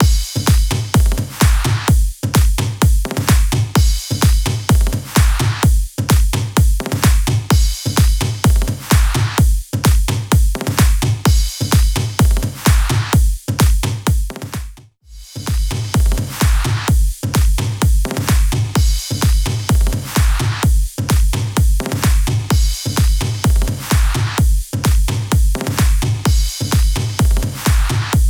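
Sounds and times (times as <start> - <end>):
electronic dance music: 0.0 - 28.2.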